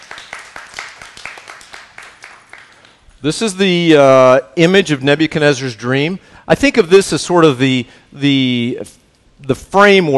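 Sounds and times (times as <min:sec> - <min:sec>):
audience clapping: 0:00.0 - 0:03.0
speech: 0:03.2 - 0:10.1.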